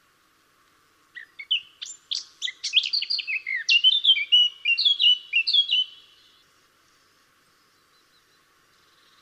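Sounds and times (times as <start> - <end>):
Eurasian blackcap Sylvia atricapilla song of hurried warbling and mellow whistles: 1.2 - 6.0.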